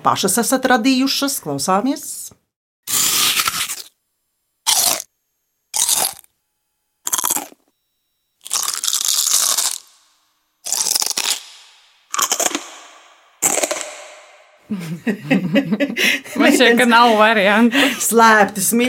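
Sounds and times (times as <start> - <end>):
speech: 0.0 - 2.4, 15.1 - 15.4, 16.6 - 18.8
someone eating crunchy potato chips: 2.9 - 4.0, 4.7 - 5.1, 5.8 - 6.3, 7.1 - 7.7, 8.4 - 14.2
laughter: 14.7 - 17.8.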